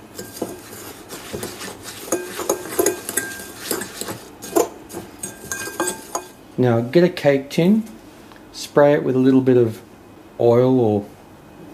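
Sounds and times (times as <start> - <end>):
gritty stirring: 0.0 - 6.4
utensil scraping a bowl mixing crushed biscuits with melted butter: 0.0 - 6.4
speech: 6.6 - 8.0, 8.6 - 11.2.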